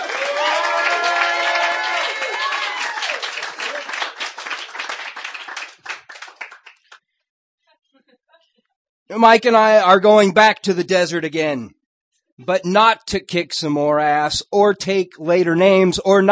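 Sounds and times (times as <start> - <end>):
audience clapping for a performer at a reading: 0.0 - 7.0
speech: 9.1 - 11.8, 12.4 - 16.3.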